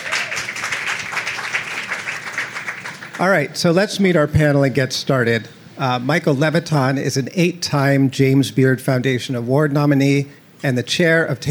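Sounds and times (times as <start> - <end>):
audience applause: 0.0 - 3.3
speech: 3.2 - 11.4.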